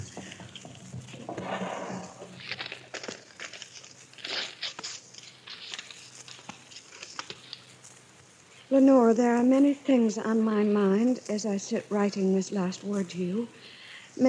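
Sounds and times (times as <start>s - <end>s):
sealed envelope being opened: 0.0s - 8.3s
speech: 8.8s - 14.2s.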